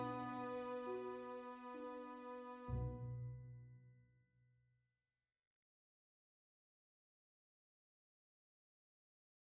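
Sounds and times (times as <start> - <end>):
epic orchestral fantasy music: 0.0 - 2.8.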